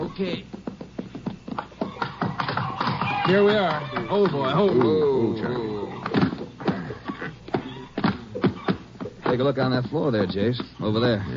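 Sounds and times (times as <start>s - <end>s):
horses walking into a shed: 0.0s - 11.3s
speech: 0.1s - 0.6s, 3.3s - 5.8s, 9.3s - 11.3s.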